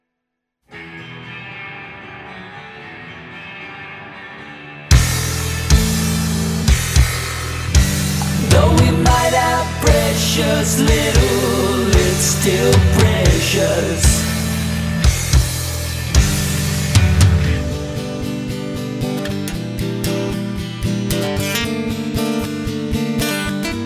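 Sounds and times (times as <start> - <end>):
bass: 4.9 - 23.8.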